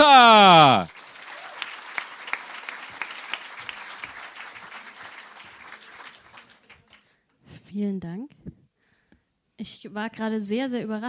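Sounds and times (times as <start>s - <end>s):
audience clapping: 0.0s - 7.2s
speech: 9.6s - 11.0s.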